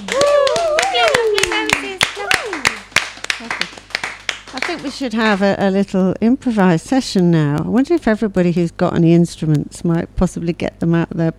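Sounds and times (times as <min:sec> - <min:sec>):
audience applause: 0:00.0 - 0:05.4
speech: 0:04.7 - 0:11.3.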